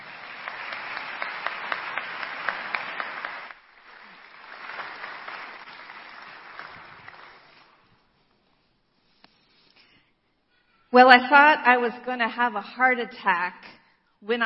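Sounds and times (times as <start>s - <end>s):
audience applause: 0.0s - 7.9s
speech: 10.9s - 14.4s.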